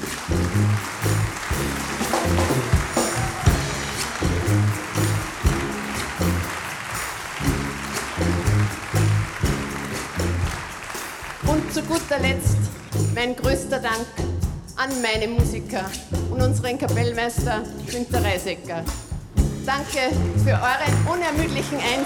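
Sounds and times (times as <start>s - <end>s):
audience applause: 0.0s - 13.1s, 20.8s - 22.0s
speech: 11.8s - 14.2s, 14.8s - 19.0s, 19.6s - 22.0s.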